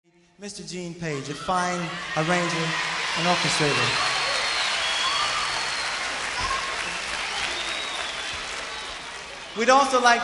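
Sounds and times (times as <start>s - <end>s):
speech: 0.4s - 4.2s, 9.6s - 10.2s
audience applause: 1.8s - 10.2s.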